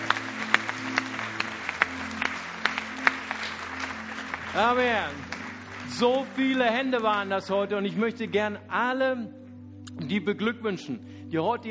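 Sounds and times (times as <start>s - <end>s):
audience applause: 0.0s - 7.4s
speech: 4.6s - 5.3s, 5.9s - 9.4s, 10.0s - 11.6s.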